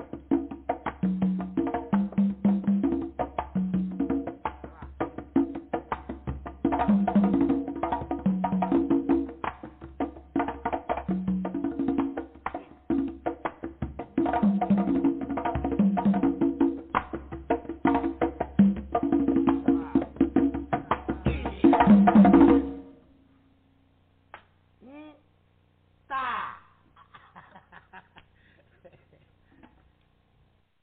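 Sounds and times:
fast drumming with low booming undertone and pitched tones: 0:00.0 - 0:22.8
laughter: 0:26.2 - 0:29.8.

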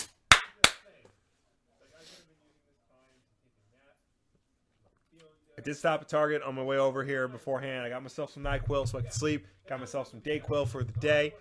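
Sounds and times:
hand clapping: 0:00.0 - 0:00.9
speech: 0:05.6 - 0:11.3.

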